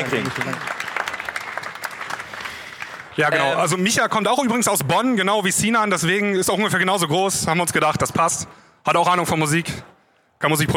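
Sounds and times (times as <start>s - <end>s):
speech: 0.0s - 0.8s, 3.2s - 10.7s
audience applause: 0.0s - 3.9s.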